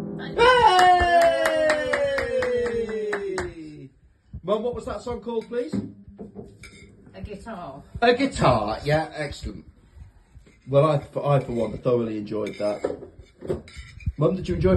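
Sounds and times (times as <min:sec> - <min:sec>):
applause, clapping hands: 0:00.4 - 0:03.8
speech: 0:04.5 - 0:06.0, 0:07.4 - 0:09.6, 0:10.7 - 0:14.7.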